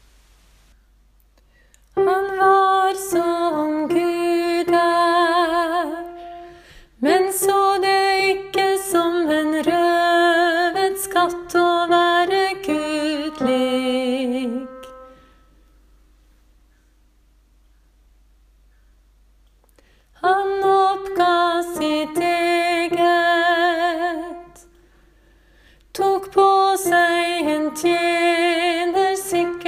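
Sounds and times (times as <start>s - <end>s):
soprano voice: 1.9s - 6.4s, 7.0s - 15.2s, 20.2s - 24.7s, 25.9s - 29.6s.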